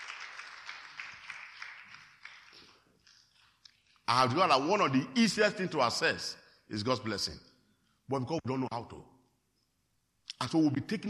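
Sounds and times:
audience clapping: 0:00.0 - 0:03.5
speech: 0:04.1 - 0:07.5, 0:08.1 - 0:09.1, 0:10.4 - 0:11.0.

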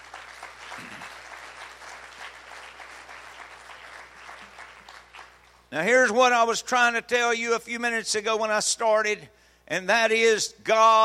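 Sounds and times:
audience clapping hands: 0:00.0 - 0:05.7
speech: 0:05.7 - 0:11.0.

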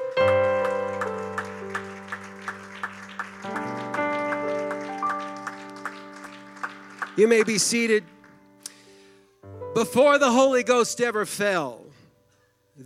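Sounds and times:
audience clapping hands: 0:00.0 - 0:08.9
speech: 0:07.2 - 0:08.2, 0:09.8 - 0:11.8.

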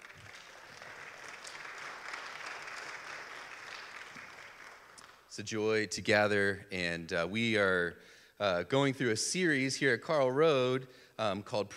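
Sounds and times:
congregation clapping during a Sunday service at Carl Road Baptist church: 0:00.0 - 0:05.3
speech: 0:05.4 - 0:11.7.

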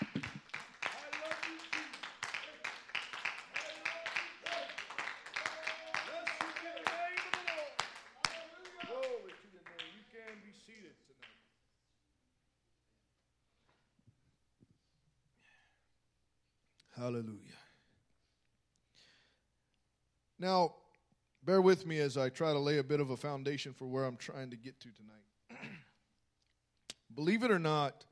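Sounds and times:
audience clapping hands in praise: 0:00.0 - 0:11.5
speech: 0:17.0 - 0:17.6, 0:20.4 - 0:20.8, 0:21.5 - 0:25.3, 0:27.2 - 0:28.1.

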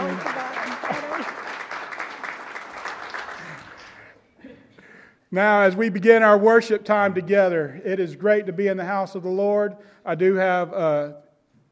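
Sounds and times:
audience applause: 0:00.0 - 0:04.2
speech: 0:05.3 - 0:11.2.

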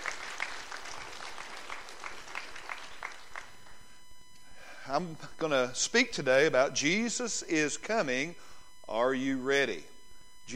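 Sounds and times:
round of applause from audience: 0:00.0 - 0:03.6
speech: 0:04.9 - 0:09.9.

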